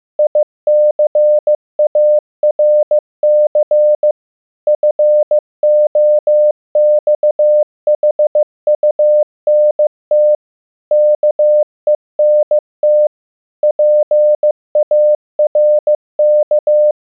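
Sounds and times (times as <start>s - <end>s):
CW Morse code beeps: 0.2s - 17.0s.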